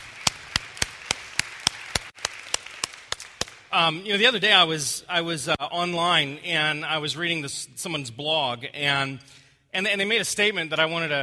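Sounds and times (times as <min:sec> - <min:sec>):
audience clapping: 0:00.0 - 0:03.7
speech: 0:03.7 - 0:11.2.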